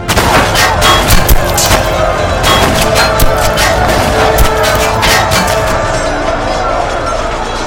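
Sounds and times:
lances splintering in battle: 0.0s - 5.8s
dense loud roar of chaotic battle: 0.0s - 7.6s
swords clanging against shields: 0.2s - 5.8s.

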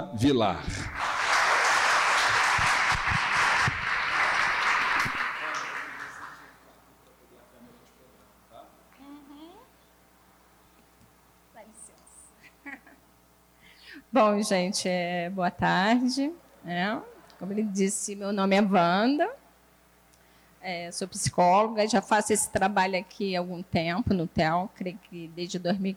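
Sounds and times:
speech: 0.1s - 0.8s, 14.2s - 19.4s, 20.6s - 25.9s
audience applause: 0.7s - 6.6s.

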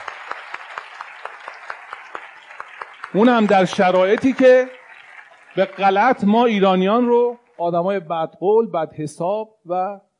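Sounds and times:
audience clapping in unison at a talk: 0.0s - 8.0s
speech: 3.1s - 4.8s, 5.6s - 10.0s.

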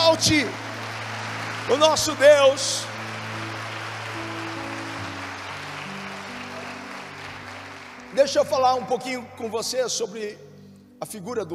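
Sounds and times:
large crowd applauding and cheering: 0.0s - 8.9s
sustained keyboard chords: 0.0s - 11.5s
speech: 0.1s - 0.6s, 1.7s - 2.9s, 8.2s - 10.4s, 11.0s - 11.5s.

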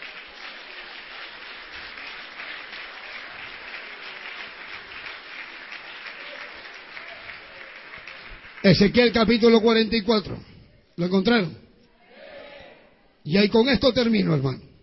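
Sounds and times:
audience applauding: 0.0s - 9.6s
speech: 8.6s - 11.6s, 13.2s - 14.7s.

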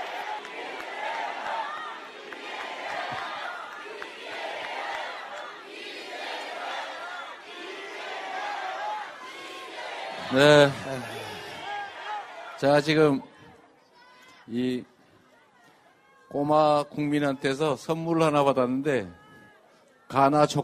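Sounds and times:
large crowd applause: 0.0s - 12.9s
crowd shouting voices: 0.0s - 14.5s
speech: 10.3s - 11.1s, 12.6s - 13.3s, 14.5s - 14.9s, 16.3s - 19.2s, 20.1s - 20.6s.

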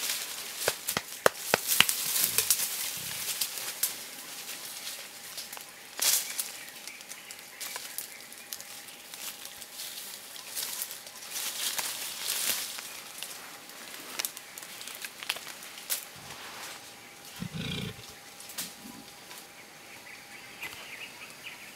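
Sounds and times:
cracks, snaps and rustles of eastern lowland gorillas in a Congo forest: 0.0s - 16.1s
faint steady whine: 0.1s - 21.7s
eastern lowland gorilla low grunt: 17.4s - 18.1s.

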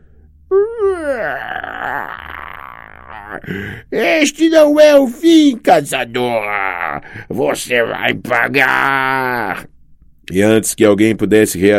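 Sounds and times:
speech: 0.5s - 1.6s, 3.4s - 9.7s, 10.3s - 11.7s
manticore howling in pain: 0.5s - 3.5s, 6.4s - 7.0s.

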